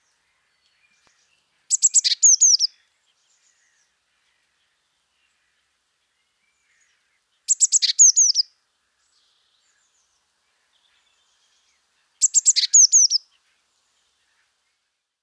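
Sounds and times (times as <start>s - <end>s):
Eurasian blue tit calling: 1.7s - 2.7s, 7.5s - 8.4s, 12.2s - 13.2s.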